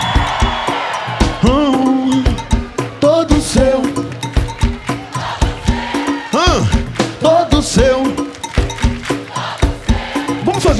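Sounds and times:
concert crowd shouting and cheering: 0.0s - 10.7s
loud pounding music: 0.0s - 10.7s.

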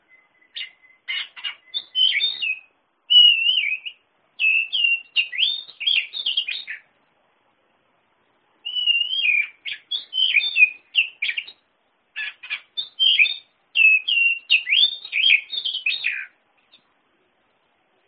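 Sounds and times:
Oriental magpie-robin song: 0.0s - 7.0s, 8.6s - 16.9s.

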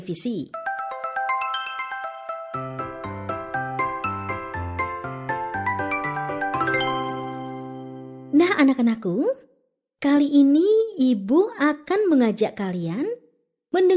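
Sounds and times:
speech: 0.0s - 0.6s, 8.6s - 13.9s
melodic telephone ringtone: 0.6s - 8.3s.

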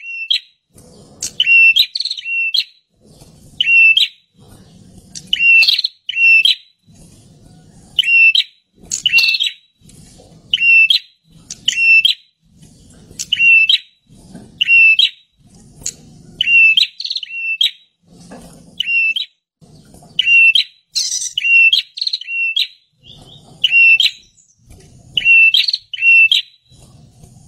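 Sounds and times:
bird calling with short whistled notes: 0.0s - 0.6s, 1.2s - 2.9s, 3.6s - 4.2s, 5.2s - 6.8s, 8.0s - 9.7s, 10.5s - 12.3s, 13.2s - 14.0s, 14.6s - 17.9s, 18.8s - 19.4s, 20.1s - 26.8s.

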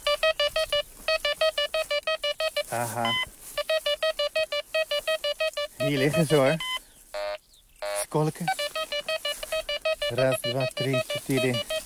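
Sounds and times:
metal detector beeping: 0.0s - 11.8s
speech: 2.7s - 3.4s, 5.8s - 6.7s, 8.1s - 8.6s, 10.1s - 11.7s.

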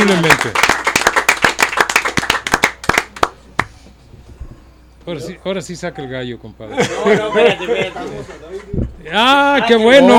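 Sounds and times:
speech: 0.0s - 0.7s, 5.1s - 10.1s
applause: 0.0s - 3.7s
laughter: 6.6s - 9.0s.

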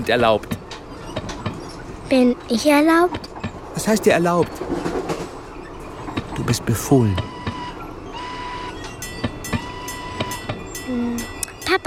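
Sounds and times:
speech: 0.0s - 0.6s, 2.1s - 4.9s, 6.6s - 7.3s, 10.9s - 11.8s
train running on rails: 0.0s - 11.8s
faint high whine: 6.4s - 11.8s.

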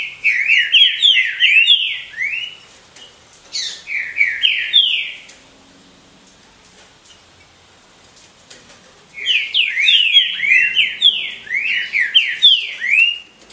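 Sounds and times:
Green-winged saltator song of bright whistled slurs: 0.0s - 2.6s, 3.5s - 5.3s, 9.2s - 13.4s.

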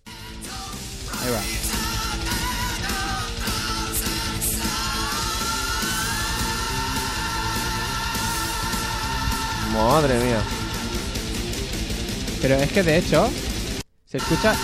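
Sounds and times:
distorted guitars: 0.0s - 14.6s
loud dense heavy metal track: 0.0s - 14.6s
speech: 1.2s - 1.6s, 9.8s - 10.6s, 12.4s - 13.4s, 14.1s - 14.6s
high-pitched scream in a heavy metal song: 1.4s - 11.5s, 14.2s - 14.6s.

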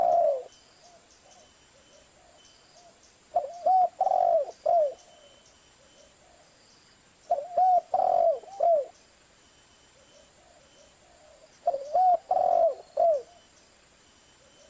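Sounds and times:
spotted dove cooing: 0.0s - 6.5s, 7.3s - 9.0s, 10.0s - 13.5s.

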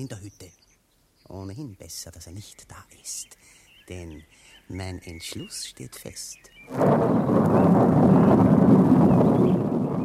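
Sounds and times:
speech: 0.0s - 0.5s, 1.3s - 8.0s
deep rolling rumble of thunder: 6.7s - 10.0s.

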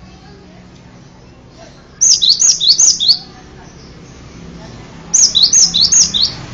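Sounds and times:
bird whistled song: 2.0s - 3.3s, 5.2s - 6.4s.

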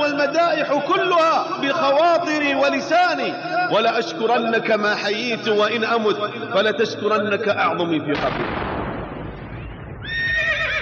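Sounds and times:
speech: 0.3s - 8.7s
horse neighing: 10.0s - 10.8s.

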